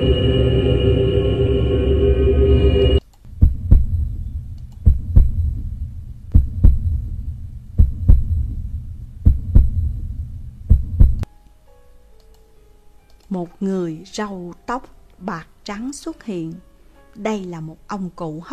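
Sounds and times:
low buzzing drone: 0.0 - 3.0
soft low rumble: 0.0 - 11.3
fast heartbeat sound effect: 3.4 - 4.2, 4.8 - 11.2
speech: 14.2 - 18.5.

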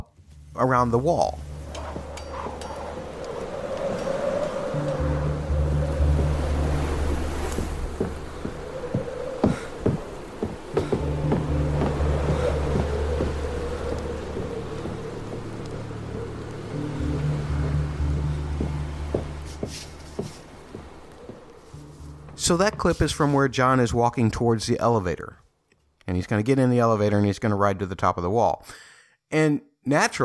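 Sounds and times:
steady hiss of rain: 0.3 - 23.5
speech: 0.6 - 1.5, 22.5 - 25.4, 26.1 - 30.2
rumbling storm ambience: 0.7 - 23.9
low droning bell tones in film scene: 1.4 - 9.4, 10.8 - 19.5.

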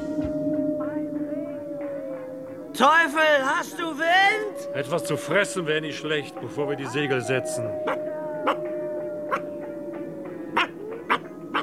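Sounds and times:
steady low hum: 0.0 - 11.6
speech: 2.8 - 8.7
dog giving short sharp barks: 7.8 - 9.7, 10.6 - 11.6.

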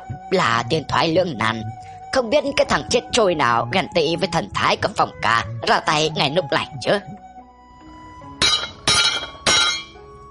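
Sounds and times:
speech: 0.1 - 7.2
swords and sheaths clashing: 8.4 - 10.0.

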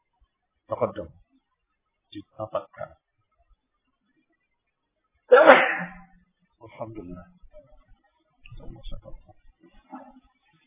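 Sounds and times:
speech: 0.7 - 1.2, 2.1 - 3.0, 6.7 - 7.4, 8.6 - 10.3
sneeze: 5.3 - 6.0.

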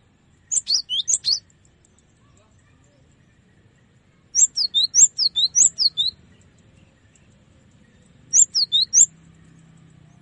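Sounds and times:
cinereous tit singing high sharp two-pitched chirps: 0.5 - 1.5, 4.4 - 6.2, 8.3 - 9.1.

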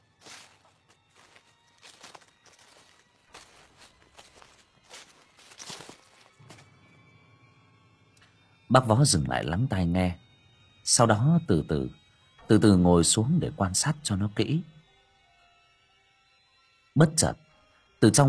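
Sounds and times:
footsteps treading through leaves in undergrowth: 0.2 - 6.6
speech: 8.7 - 10.2, 10.9 - 14.8, 17.0 - 17.4, 18.0 - 18.2.

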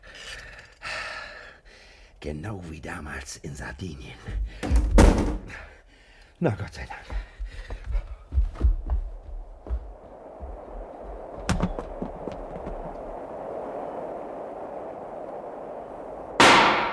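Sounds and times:
speech: 2.2 - 5.6, 6.4 - 7.3
soft thuds: 4.2 - 5.6, 7.8 - 13.2
low rumbling: 7.9 - 16.9
warning gunshot on board a ship: 16.4 - 16.9.

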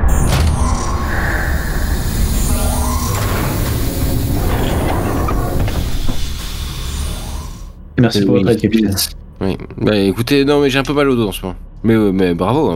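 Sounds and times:
heavy door sliding shut: 0.1 - 7.8
speech: 8.0 - 12.7.

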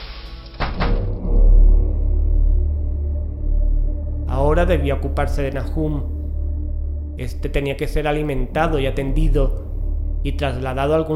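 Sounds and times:
white-painted door shut with a sharp double thud: 0.6 - 1.2
low heavy rumble: 0.8 - 11.1
speech: 4.6 - 6.2, 7.2 - 9.6, 10.2 - 11.1.

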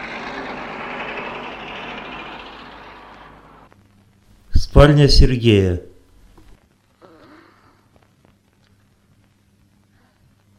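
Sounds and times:
bus driving away: 0.0 - 3.7
speech: 4.6 - 5.9.

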